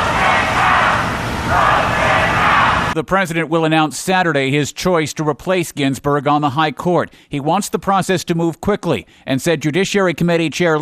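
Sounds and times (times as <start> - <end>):
crowd shouting as President Trump arrives at the Supreme Court: 0.0 - 3.0
speech: 3.0 - 10.7.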